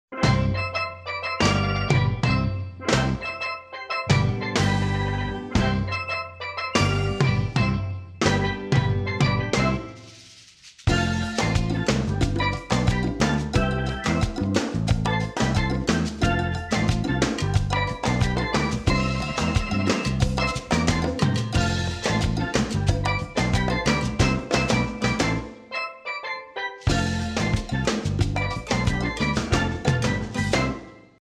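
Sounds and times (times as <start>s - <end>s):
tropical music: 0.1s - 31.1s.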